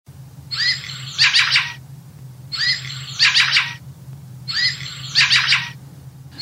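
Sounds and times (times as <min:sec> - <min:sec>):
low steady hum: 0:00.1 - 0:06.4
fieldfare harsh chattering calls: 0:00.5 - 0:01.8, 0:02.5 - 0:03.8, 0:04.5 - 0:06.4.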